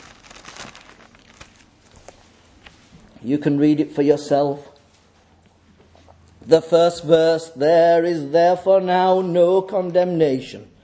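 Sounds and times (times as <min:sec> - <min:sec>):
Bible pages turning: 0:00.0 - 0:02.9
speech: 0:03.2 - 0:04.7, 0:06.5 - 0:10.7.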